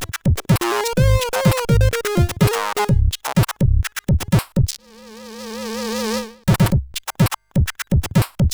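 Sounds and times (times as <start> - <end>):
fat beats on a CSG8580R5 sound chip: 0.0 - 4.8, 6.5 - 8.5.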